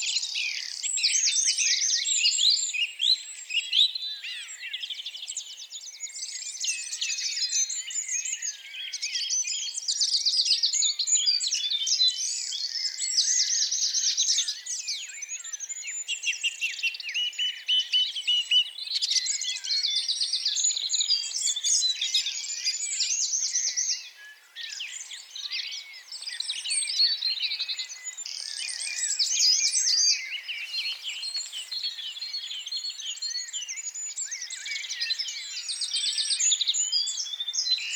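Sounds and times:
birdsong: 0:00.0 - 0:37.9.

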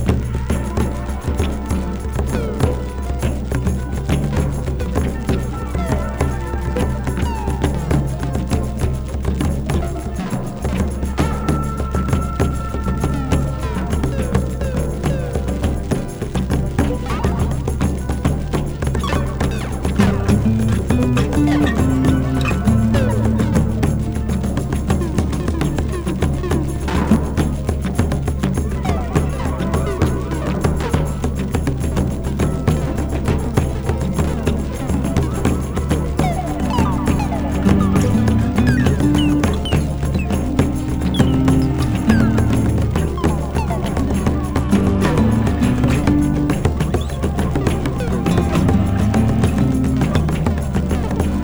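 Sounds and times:
Brazilian psychedelic jam: 0:00.1 - 0:51.4.

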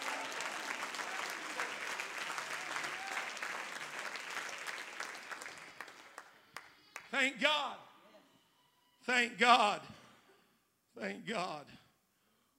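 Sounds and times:
audience clapping hands: 0:00.0 - 0:07.2
speech: 0:07.2 - 0:07.9, 0:09.0 - 0:09.9, 0:11.0 - 0:11.8.

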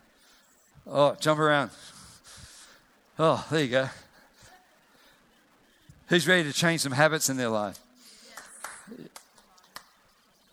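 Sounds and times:
speech: 0:00.8 - 0:01.9, 0:03.2 - 0:04.0, 0:06.1 - 0:07.8
scattered audience hand claps: 0:08.3 - 0:10.1.

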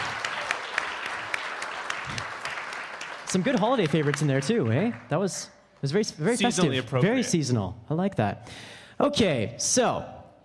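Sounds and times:
audience applause: 0:00.0 - 0:05.1
speech: 0:03.3 - 0:10.2.

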